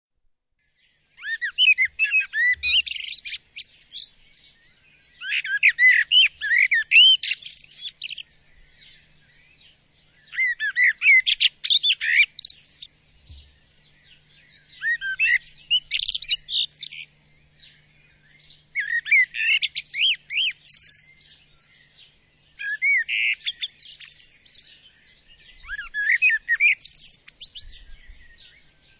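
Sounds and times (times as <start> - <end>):
bird chirping and whistling: 1.2 - 4.1, 5.2 - 8.4, 10.3 - 13.5, 14.6 - 17.1, 18.8 - 21.7, 22.6 - 24.6, 25.5 - 28.6.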